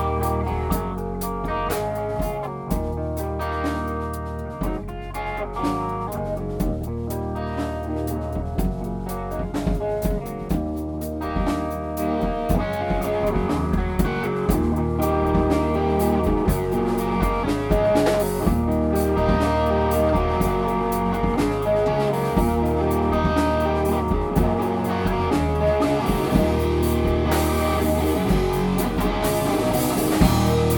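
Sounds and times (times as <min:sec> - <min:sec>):
noisy three chords: 0:00.0 - 0:30.7.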